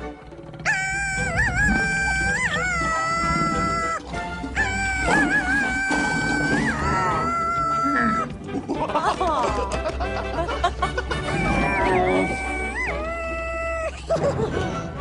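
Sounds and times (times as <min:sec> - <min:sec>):
monkey screaming: 0:00.6 - 0:08.3, 0:11.3 - 0:14.1
laughter: 0:04.6 - 0:12.7, 0:13.8 - 0:14.9.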